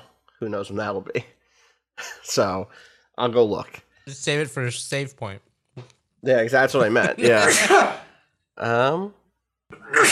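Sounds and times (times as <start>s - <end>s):
speech: 0.4s - 1.4s, 2.0s - 10.0s
person sneezing: 7.2s - 8.2s, 9.7s - 10.0s.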